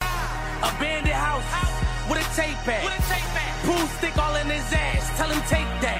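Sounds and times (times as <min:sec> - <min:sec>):
music: 0:00.0 - 0:05.9.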